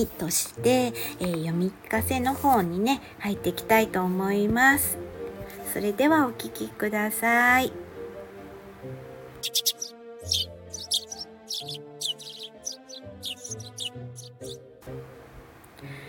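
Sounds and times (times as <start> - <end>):
speech: 0.0 - 5.1, 5.7 - 7.8, 8.8 - 10.4
birds chirping and tweeting in a morning forest around a cafe: 9.4 - 14.7.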